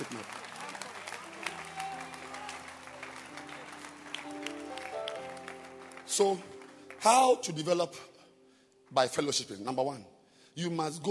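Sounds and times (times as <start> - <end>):
audience clapping: 0.0 - 7.8
speech: 6.2 - 8.1, 8.9 - 11.0.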